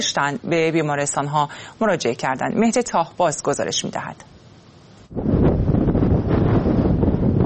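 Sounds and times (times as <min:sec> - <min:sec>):
speech: 0:00.0 - 0:04.3
sandstorm wind in Sistan and Baluchestan: 0:00.0 - 0:07.4.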